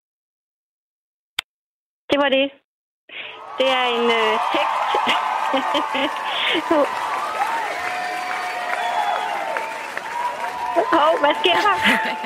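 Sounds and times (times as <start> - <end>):
speech: 2.2 - 7.0, 10.8 - 12.2
small group applauding: 3.4 - 12.2
laughter: 4.7 - 7.1, 10.8 - 12.2.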